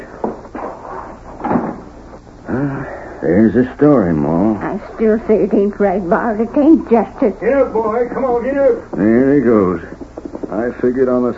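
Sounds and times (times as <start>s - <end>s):
house door pulled shut: 1.4s - 1.9s
speech: 2.5s - 11.3s.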